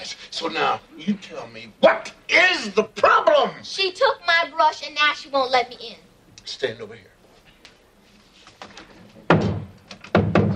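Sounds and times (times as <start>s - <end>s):
speech: 0.4s - 7.1s
thump of someone leaning against a door: 9.3s - 10.5s.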